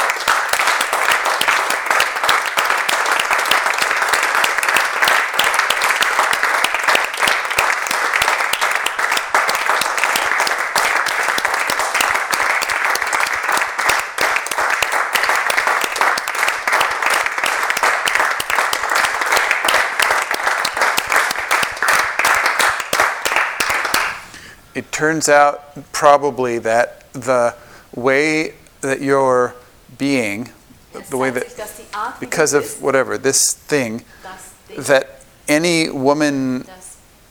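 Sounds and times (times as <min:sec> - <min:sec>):
audience clapping: 0:00.0 - 0:24.5, 0:31.0 - 0:35.0
speech: 0:25.0 - 0:31.4, 0:32.1 - 0:34.2, 0:34.8 - 0:36.8.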